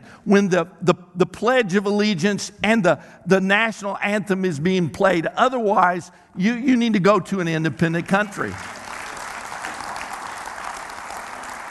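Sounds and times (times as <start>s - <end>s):
speech: 0.2s - 8.8s
audience clapping: 8.0s - 11.6s.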